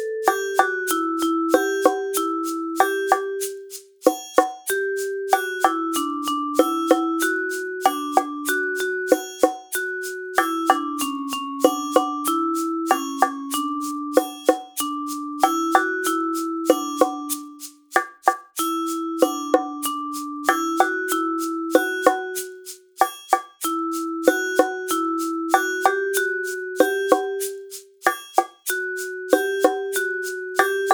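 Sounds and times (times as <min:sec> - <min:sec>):
percussion ensemble playing: 0:00.0 - 0:30.9.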